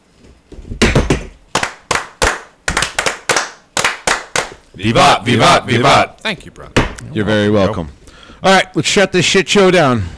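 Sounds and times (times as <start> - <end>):
brethren ritual clapping in unison as Masonic fire: 0.8 - 4.7
speech: 4.8 - 10.1.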